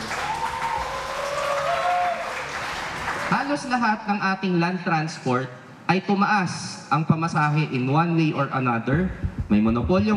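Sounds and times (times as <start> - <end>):
audience applause at an advocacy event: 0.0 - 3.4
speech: 3.5 - 10.1.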